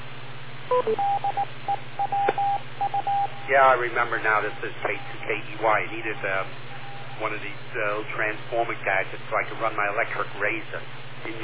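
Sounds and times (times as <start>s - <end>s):
low hum and hiss: 0.0s - 11.4s
speech: 0.7s - 1.4s, 3.5s - 6.6s, 7.2s - 11.4s
radio repeater beep tones: 0.7s - 7.4s.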